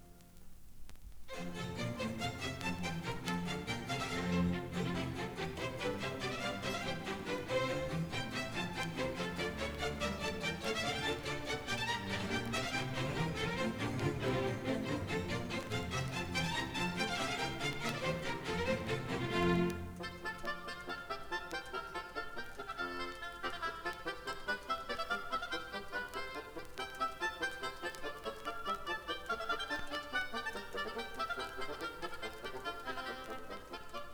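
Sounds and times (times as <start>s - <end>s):
music: 0.0s - 34.1s.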